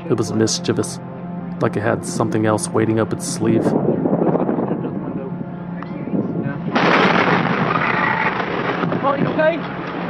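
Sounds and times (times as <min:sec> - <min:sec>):
speech: 0:00.1 - 0:03.9
wind-buffeted roaring rumble of the burning West Fertilizer plant: 0:01.0 - 0:10.0
West Fertilizer plant explosion: 0:06.7 - 0:09.2.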